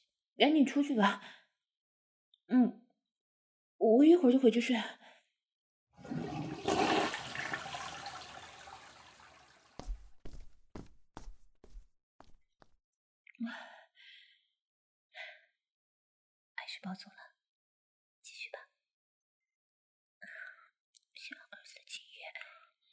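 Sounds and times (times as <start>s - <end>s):
speech: 0.4s - 1.4s, 2.5s - 2.8s, 3.8s - 5.0s, 13.4s - 13.7s, 16.8s - 17.3s
toilet flushing: 6.0s - 9.9s.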